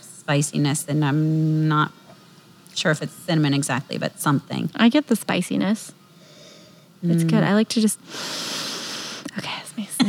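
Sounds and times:
speech: 0:00.3 - 0:02.0, 0:02.8 - 0:06.0, 0:07.0 - 0:08.6, 0:09.4 - 0:09.9
sniffing wine in a glass: 0:08.1 - 0:09.3.

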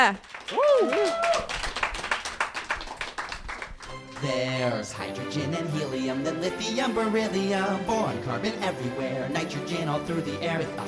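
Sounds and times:
speech: 0:00.0 - 0:01.6, 0:04.2 - 0:10.8
crowd applauding: 0:00.0 - 0:04.4
whoops and cheers: 0:00.5 - 0:01.6.

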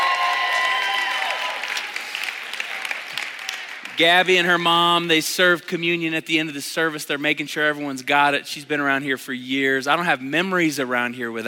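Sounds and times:
crowd clapping for a birthday at a church service: 0:00.0 - 0:04.7
speech: 0:04.0 - 0:11.4.

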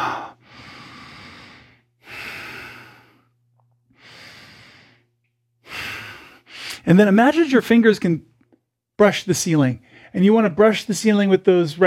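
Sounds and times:
deep breaths during a guided yoga session: 0:00.0 - 0:06.9
speech: 0:06.8 - 0:08.3, 0:09.0 - 0:11.8.

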